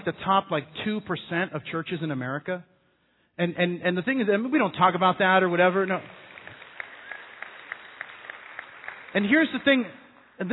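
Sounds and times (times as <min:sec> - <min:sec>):
speech: 0:00.0 - 0:02.7, 0:03.4 - 0:06.2, 0:09.2 - 0:10.5
audience applause: 0:06.0 - 0:09.8.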